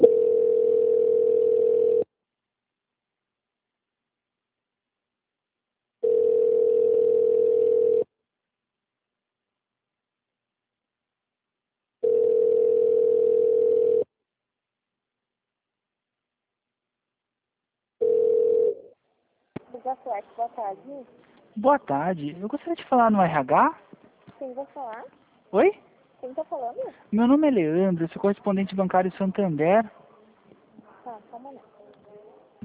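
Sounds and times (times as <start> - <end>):
telephone ringback tone: 0.0 - 2.1, 6.0 - 8.1, 12.0 - 14.1, 18.0 - 18.8
speech: 20.6 - 23.8, 24.4 - 30.0.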